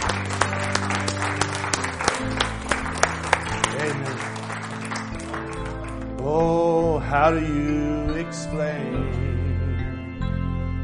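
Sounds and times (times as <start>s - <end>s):
audience clapping: 0.0s - 7.8s
sustained low musical chord: 0.0s - 10.8s
speech: 7.2s - 9.3s.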